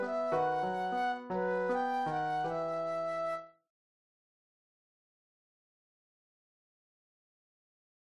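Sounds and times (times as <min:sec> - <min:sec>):
flute solo: 0:00.0 - 0:03.6.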